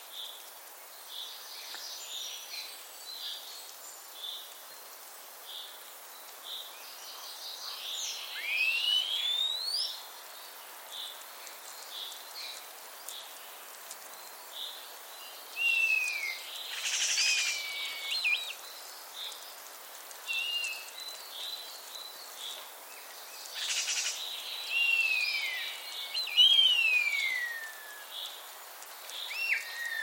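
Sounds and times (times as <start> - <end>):
Common starling chattering and whistling: 7.1 - 9.9, 15.6 - 18.6, 20.3 - 21.1, 23.6 - 28.1, 29.2 - 30.0.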